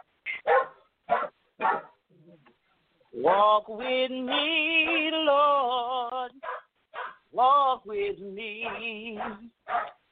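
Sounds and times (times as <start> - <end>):
small dog barking: 0.4 - 2.0, 3.2 - 3.5, 4.3 - 5.1, 6.4 - 7.2, 8.6 - 10.0
speech: 3.1 - 6.4, 7.4 - 10.0.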